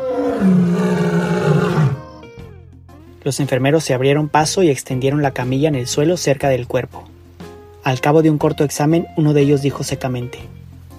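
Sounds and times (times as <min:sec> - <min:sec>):
lion roaring: 0:00.0 - 0:02.1
speech: 0:03.3 - 0:07.1, 0:07.8 - 0:10.9.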